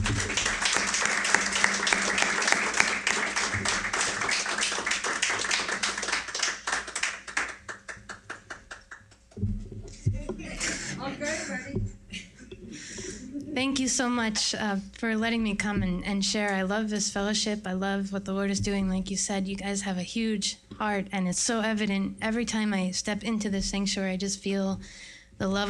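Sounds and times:
church congregation clapping to welcome a guest missionary speaker: 0.0s - 9.4s
laughter: 9.9s - 13.6s
speech: 13.7s - 25.6s.

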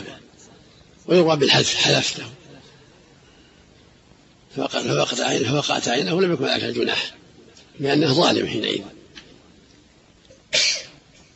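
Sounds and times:
speech: 1.1s - 2.4s, 4.5s - 7.2s, 7.8s - 9.0s
person sneezing: 10.5s - 11.0s.

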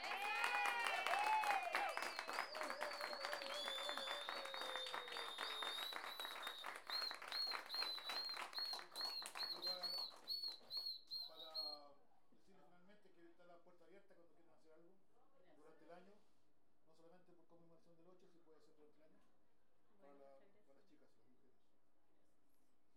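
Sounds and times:
voices cheering: 0.0s - 6.5s
crowd clapping: 0.0s - 10.9s
shrill whistles: 0.0s - 11.8s.

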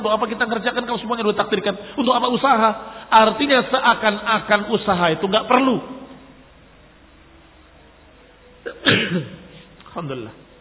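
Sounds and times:
speech: 0.0s - 6.0s, 10.0s - 10.4s
quiet hiss: 0.0s - 10.6s
sneeze: 8.7s - 9.4s.

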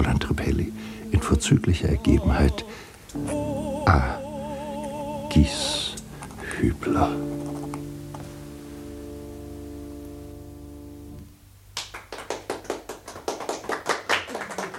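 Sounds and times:
sustained musical chord: 0.0s - 11.5s
speech: 1.4s - 4.2s, 5.3s - 5.9s, 6.6s - 7.4s
applause after a song in a radio play: 11.8s - 14.7s.

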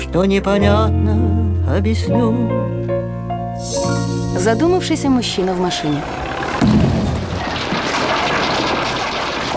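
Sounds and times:
speech: 0.1s - 2.8s, 3.6s - 6.8s
wrecking ball demolishing old building: 6.2s - 9.5s.

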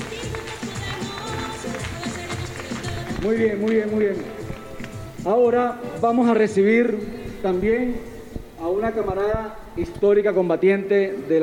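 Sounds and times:
audience applause: 0.0s - 3.4s
speech: 3.2s - 4.4s, 5.2s - 11.4s.

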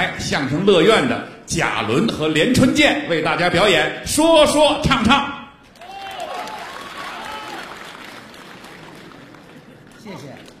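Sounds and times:
speech: 0.0s - 5.4s
audience applause: 5.7s - 10.5s.

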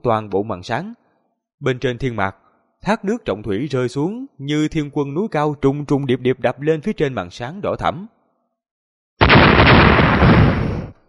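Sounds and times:
speech: 0.0s - 1.0s, 1.6s - 8.2s
loud successive explosions: 9.2s - 11.0s.

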